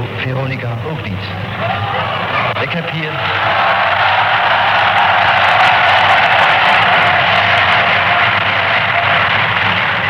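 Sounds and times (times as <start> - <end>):
speech: 0.2 - 3.9
applause: 3.0 - 10.0.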